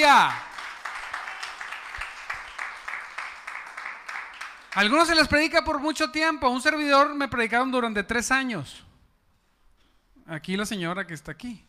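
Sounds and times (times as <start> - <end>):
speech: 0.0 - 0.5, 4.7 - 8.8, 10.3 - 11.6
audience applauding: 0.0 - 5.1.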